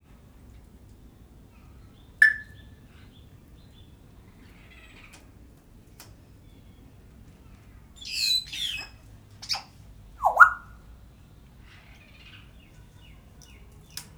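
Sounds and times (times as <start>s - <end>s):
captive grey parrot squawking at a zoo in Szeged Hungary: 2.2s - 2.5s, 8.0s - 9.6s, 10.2s - 10.7s.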